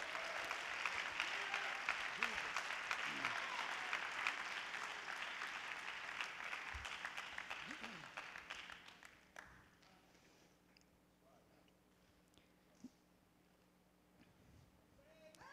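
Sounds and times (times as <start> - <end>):
audience clapping hands: 0.0 - 10.1.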